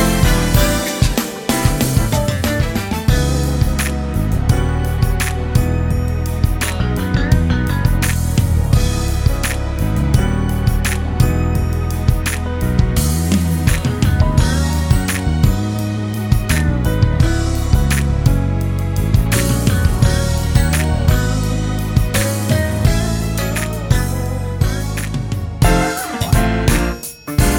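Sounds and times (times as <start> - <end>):
church groove music: 0.0 - 27.5.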